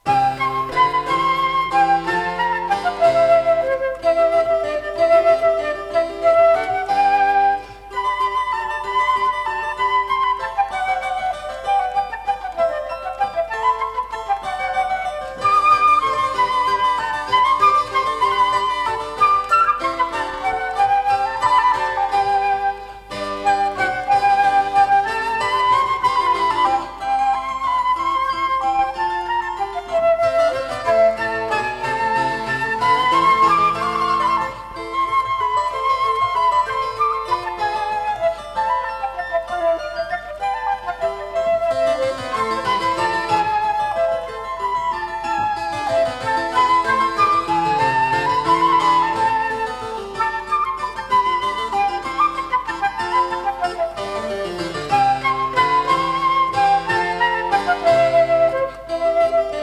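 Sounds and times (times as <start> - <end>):
harpsichord playing a sonata in C major: 0.0 - 59.6.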